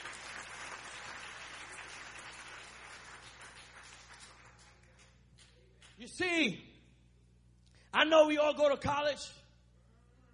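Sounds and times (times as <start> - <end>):
crowd clapping: 0.0 - 6.1
speech: 6.0 - 6.7, 7.9 - 9.4.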